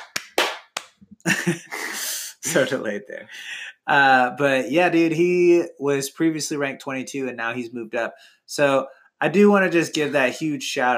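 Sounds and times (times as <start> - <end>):
hand claps: 0.0 - 1.0
speech: 1.2 - 1.8, 2.4 - 10.9.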